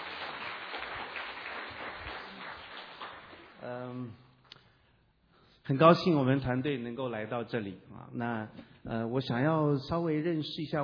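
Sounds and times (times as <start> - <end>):
crowd applauding: 0.0 - 3.6
speech: 3.6 - 4.3, 5.7 - 10.8.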